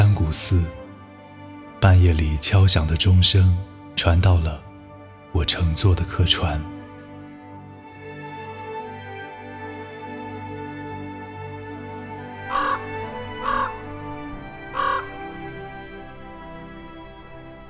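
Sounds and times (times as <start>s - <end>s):
speech: 0.3s - 0.8s, 1.8s - 4.6s, 5.3s - 6.7s
crows cawing: 12.4s - 15.5s.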